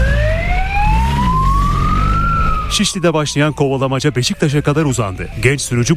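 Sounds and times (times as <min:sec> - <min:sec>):
low traffic rumble: 0:00.0 - 0:04.6
police siren wailing during a motorcycle chase through city streets: 0:00.0 - 0:05.9
speech: 0:02.8 - 0:05.9.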